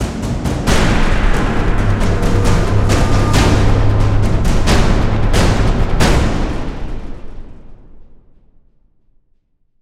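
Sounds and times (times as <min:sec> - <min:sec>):
musical stinger fill: 0:00.7 - 0:08.0.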